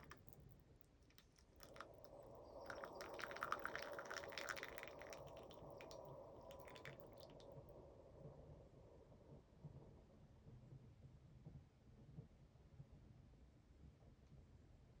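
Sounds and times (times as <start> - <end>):
low steady rumble: 0.0 - 11.5
moka pot brewing coffee, bubbling and sputtering: 1.2 - 7.5.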